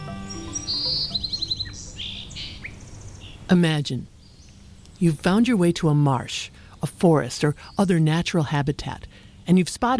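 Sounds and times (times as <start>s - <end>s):
bird call: 0.0s - 3.5s
speech: 3.5s - 4.1s, 5.0s - 9.9s.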